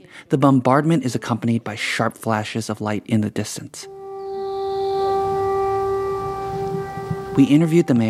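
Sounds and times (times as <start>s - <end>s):
speech: 0.2s - 4.0s, 7.4s - 8.0s
air raid siren blaring: 3.9s - 8.0s.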